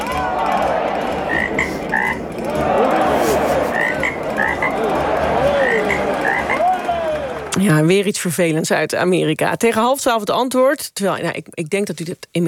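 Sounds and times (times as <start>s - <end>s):
laughter: 0.0s - 7.6s
chorus of frogs croaking: 1.3s - 2.2s, 3.7s - 4.9s, 5.5s - 6.7s
speech: 7.8s - 12.4s.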